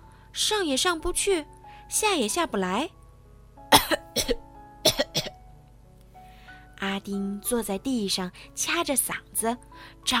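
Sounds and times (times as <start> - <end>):
speech: 0.4 - 3.0, 3.9 - 4.5, 6.8 - 10.1
person coughing while choking on jelly: 3.7 - 5.4.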